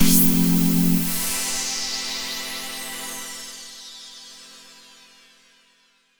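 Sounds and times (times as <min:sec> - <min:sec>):
epic synth pad for UK house and electro: 0:00.0 - 0:02.4.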